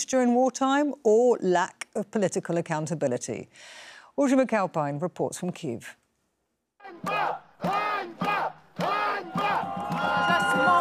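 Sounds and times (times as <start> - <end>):
speech: 0.1 - 6.0, 6.9 - 8.9
protesters chanting one short word in unison: 6.8 - 10.7.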